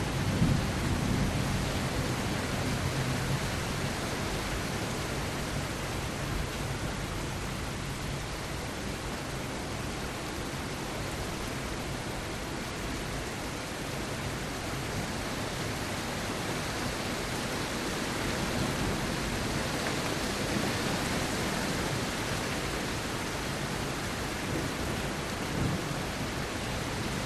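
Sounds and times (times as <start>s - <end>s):
low thunder rumbles: 0.0s - 3.6s
rain heard through an open window at home: 0.0s - 27.2s.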